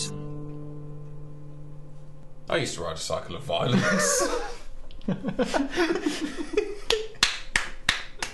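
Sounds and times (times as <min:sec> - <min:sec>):
speech: 0:02.5 - 0:06.9
burst of laughter: 0:03.7 - 0:07.1
one person clapping hands: 0:06.8 - 0:08.3.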